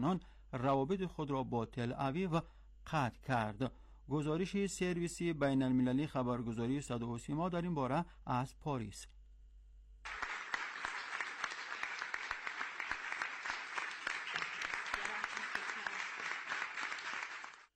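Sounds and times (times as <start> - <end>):
speech: 0.0 - 9.2
applause and cheering: 10.1 - 17.7.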